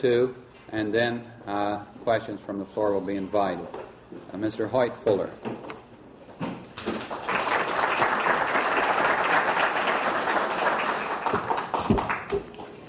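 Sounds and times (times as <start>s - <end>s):
speech: 0.0s - 5.5s
audience applause: 6.9s - 12.4s.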